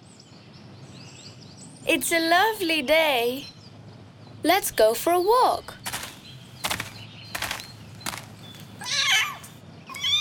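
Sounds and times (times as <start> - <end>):
speech: 1.9 - 3.5, 4.4 - 5.8
kitten meowing: 8.8 - 10.1.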